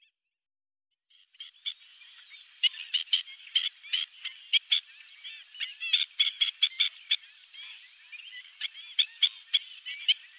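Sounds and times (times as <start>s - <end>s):
black-winged stilt harsh yapping calls: 2.6s - 10.2s.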